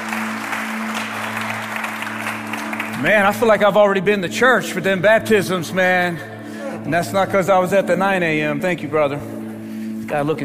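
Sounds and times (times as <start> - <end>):
audience clapping hands: 0.0 - 3.8
speech: 3.0 - 9.4, 10.1 - 10.4.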